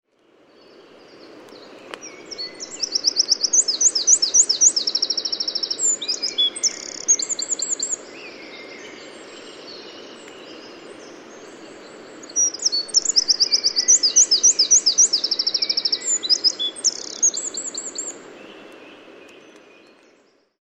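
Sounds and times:
steady low background hiss: 0.1s - 20.5s
Eurasian wren song: 2.0s - 10.1s, 12.2s - 18.2s
faint click: 10.2s - 10.4s, 18.7s - 20.2s.

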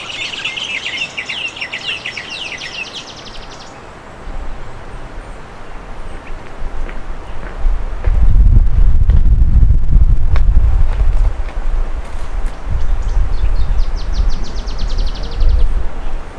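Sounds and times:
bird chirps: 0.0s - 3.8s, 12.8s - 16.2s
rumbling background noise: 0.0s - 16.3s.

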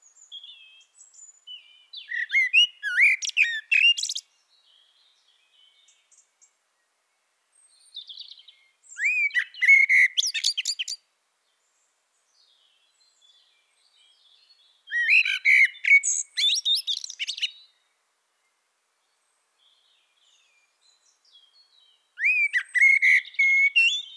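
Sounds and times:
common blackbird fluted song with high squeaks: 0.0s - 24.1s.

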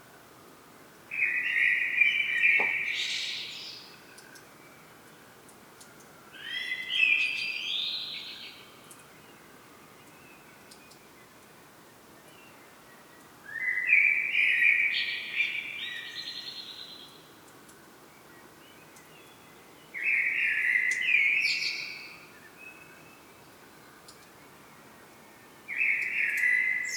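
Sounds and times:
common blackbird singing: 1.1s - 4.4s, 6.4s - 9.0s, 13.5s - 17.2s, 18.7s - 23.4s, 25.5s - 26.9s.

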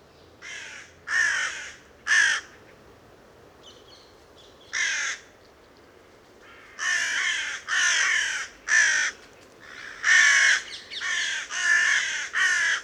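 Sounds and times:
Carrion crow (Corvus corone) cawing harshly: 0.4s - 2.5s, 4.8s - 5.3s, 6.5s - 12.8s.

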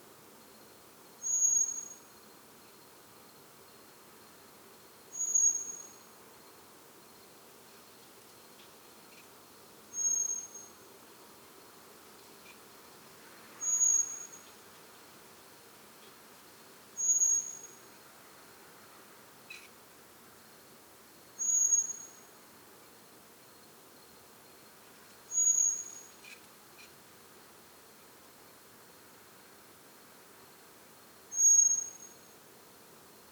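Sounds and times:
background hiss: 0.0s - 33.3s
common blackbird high whistled note: 1.2s - 2.0s, 13.6s - 14.4s, 25.3s - 26.0s, 31.3s - 32.2s.

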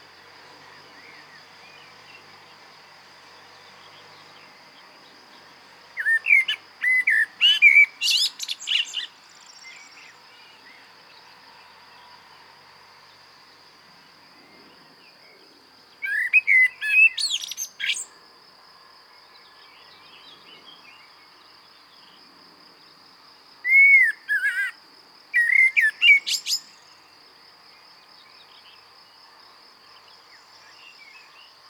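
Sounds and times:
steady high-pitched insect drone: 0.0s - 31.6s
common blackbird singing: 6.0s - 10.8s, 16.0s - 18.1s, 23.7s - 24.8s, 25.4s - 27.0s.

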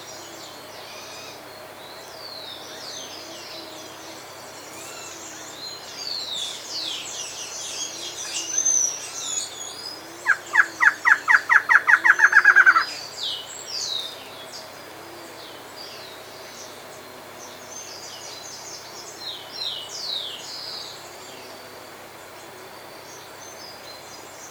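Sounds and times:
other birds singing: 0.0s - 21.6s
hiss: 0.0s - 24.4s
bird calling: 7.8s - 13.4s.

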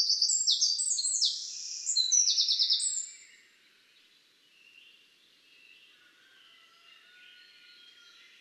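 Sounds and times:
Eurasian wren singing: 0.0s - 3.2s.

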